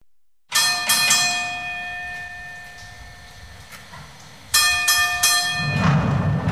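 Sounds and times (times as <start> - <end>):
mine lift bell ringing: 0.5 - 3.2, 4.5 - 6.4.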